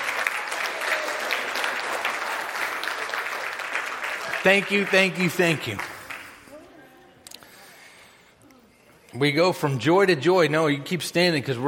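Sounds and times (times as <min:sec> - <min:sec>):
crowd applause: 0:00.0 - 0:06.6
speech: 0:04.4 - 0:05.9, 0:09.2 - 0:11.6.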